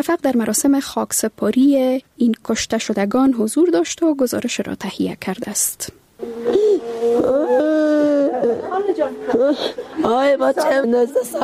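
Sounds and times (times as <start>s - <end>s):
speech: 0.0s - 7.7s, 8.4s - 11.4s
mother crying in grief: 6.2s - 11.4s.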